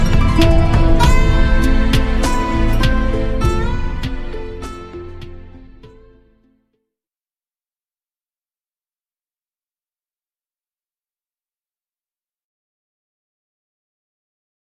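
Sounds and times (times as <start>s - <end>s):
instrumental music: 0.0s - 6.6s.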